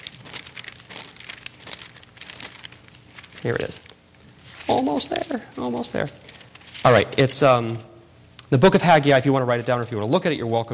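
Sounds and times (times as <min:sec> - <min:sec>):
pages of a Bible being flipped: 0:00.0 - 0:07.8
speech: 0:03.4 - 0:03.9, 0:04.7 - 0:07.9, 0:08.5 - 0:10.7.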